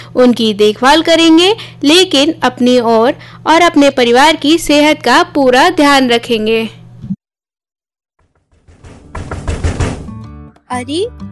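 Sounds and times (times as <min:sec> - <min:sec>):
speech: 0:00.2 - 0:06.8, 0:10.7 - 0:11.3
knocking on a studio door: 0:08.2 - 0:10.3.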